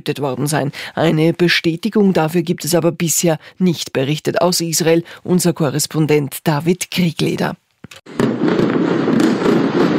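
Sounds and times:
speech: 0:00.0 - 0:09.6
heavy explosions from an Israeli airstrike on southern Beirut underground bunker: 0:08.1 - 0:09.9.

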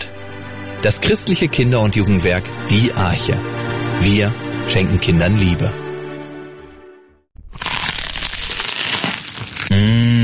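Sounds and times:
speech: 0:00.8 - 0:05.8
crispy bite into crunchy food and chewing: 0:07.4 - 0:10.2
person humming mmh: 0:09.7 - 0:10.2.

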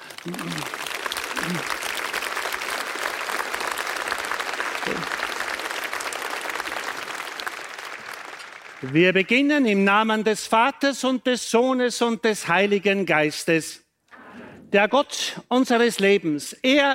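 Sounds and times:
crowd applause on town square: 0:00.0 - 0:09.0
speech: 0:00.2 - 0:00.8, 0:08.8 - 0:13.8, 0:14.7 - 0:16.9.

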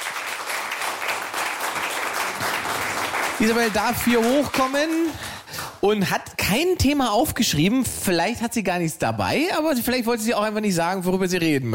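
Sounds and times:
audience applause: 0:00.0 - 0:05.6
speech: 0:03.4 - 0:11.7.

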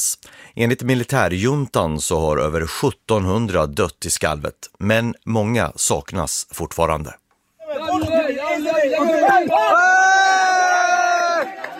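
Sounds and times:
speech: 0:00.0 - 0:07.2
cheering at rescue: 0:07.7 - 0:11.7
applause at rescue: 0:09.0 - 0:11.7.

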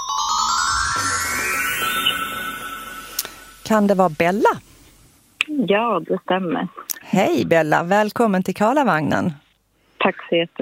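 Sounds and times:
incoming call electronic ringtone on a radio phone-in: 0:00.0 - 0:03.6
low steady hum: 0:00.5 - 0:09.4
speech: 0:01.0 - 0:01.2, 0:03.7 - 0:04.7, 0:05.5 - 0:09.4, 0:10.0 - 0:10.6.

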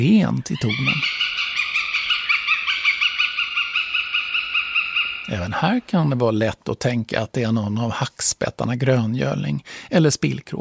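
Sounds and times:
speech: 0:00.0 - 0:01.1, 0:05.3 - 0:10.5
white-tailed eagle cackling call: 0:00.6 - 0:05.6.

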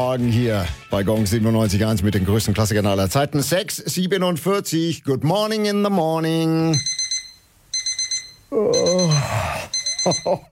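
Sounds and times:
speech: 0:00.1 - 0:06.9, 0:08.5 - 0:10.4
electronic alarm clock beeping: 0:06.8 - 0:10.4
drowsy person groaning: 0:08.5 - 0:09.7.

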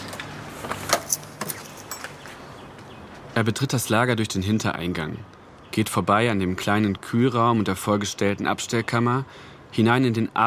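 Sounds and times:
keys jingling: 0:00.8 - 0:02.3
speech: 0:03.4 - 0:10.4.

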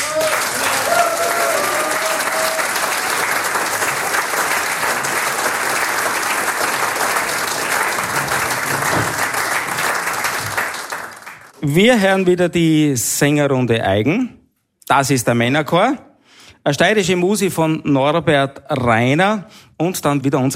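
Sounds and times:
faint cheers and whistles: 0:00.0 - 0:03.2
audience applause: 0:00.0 - 0:11.6
speech: 0:11.7 - 0:20.5.

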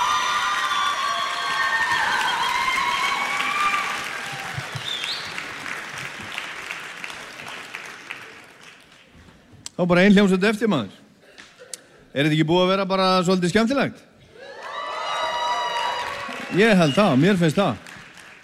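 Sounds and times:
audience cheers and whistles: 0:00.0 - 0:05.6, 0:14.4 - 0:17.5
audience applause for a band at a live music event: 0:00.0 - 0:09.1, 0:14.5 - 0:18.4
speech: 0:09.8 - 0:11.0, 0:12.2 - 0:14.1, 0:16.5 - 0:17.9.

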